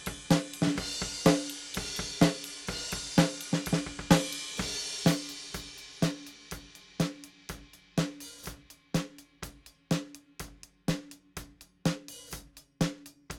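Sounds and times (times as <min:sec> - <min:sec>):
snare drum: 0:00.0 - 0:13.3.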